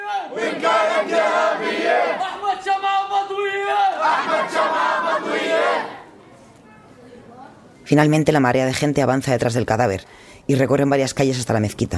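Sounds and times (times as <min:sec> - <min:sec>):
crowd of men shouting and chanting: 0:00.0 - 0:06.1
speech: 0:07.9 - 0:11.9.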